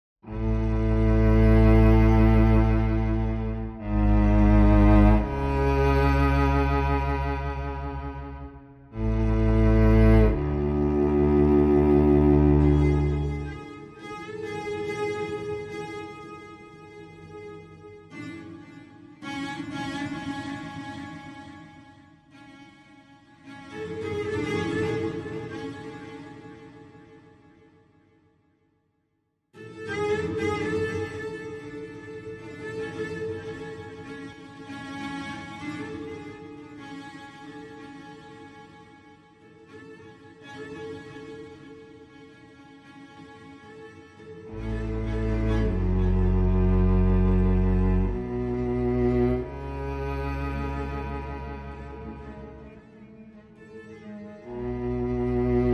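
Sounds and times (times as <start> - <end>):
cello: 0.2 - 27.7, 29.6 - 55.7.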